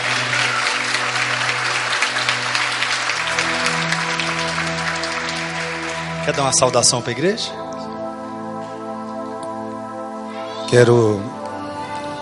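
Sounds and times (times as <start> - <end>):
audience applause: 0.0 - 7.2
sustained musical chords: 0.0 - 12.2
speech: 6.3 - 7.6, 10.7 - 11.4.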